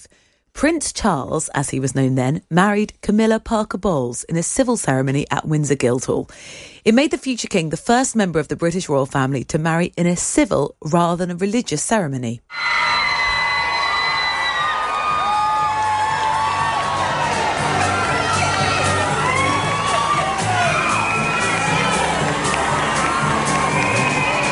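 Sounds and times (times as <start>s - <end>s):
speech: 0.0s - 13.0s
large crowd cheering and whooping: 12.5s - 24.4s.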